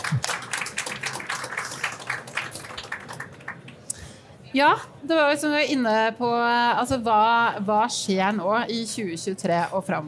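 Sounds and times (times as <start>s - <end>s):
audience applause: 0.0s - 3.8s
speech: 4.5s - 10.0s.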